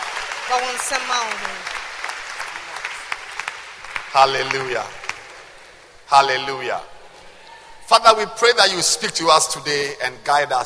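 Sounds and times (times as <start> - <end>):
audience clapping hands: 0.0 - 5.9
speech: 0.5 - 1.8, 4.1 - 5.0, 6.1 - 6.9, 7.9 - 10.6.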